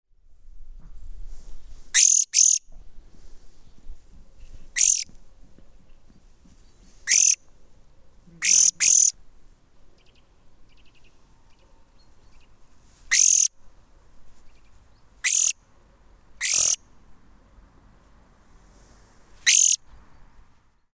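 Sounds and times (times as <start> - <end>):
Chloris chloris: 2.0 - 2.6, 4.8 - 5.0, 7.1 - 7.4, 8.4 - 9.1, 13.1 - 13.5, 15.2 - 15.5, 16.4 - 16.8, 19.5 - 19.8.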